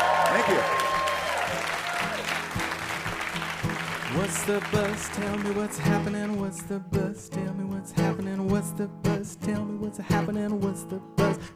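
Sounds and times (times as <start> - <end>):
audience applause for a guest: 0.0 - 6.4
speech: 4.2 - 11.5.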